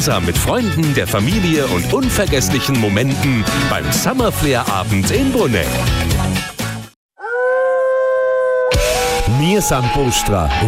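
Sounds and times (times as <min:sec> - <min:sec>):
speech: 0:00.0 - 0:06.4, 0:09.3 - 0:10.6
wolf howling: 0:07.2 - 0:10.6.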